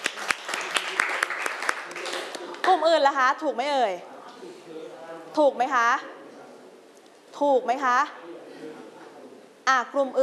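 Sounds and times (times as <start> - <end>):
students clapping in a classroom: 0.0 - 2.8
speech: 2.7 - 6.1, 7.4 - 8.2, 9.7 - 10.2.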